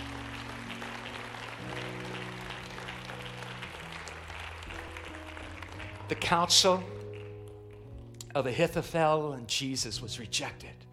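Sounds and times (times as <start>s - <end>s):
audience clapping in praise: 0.0s - 8.3s
sustained low keyboard chords: 0.0s - 9.6s
speech: 6.1s - 7.0s, 8.4s - 10.9s.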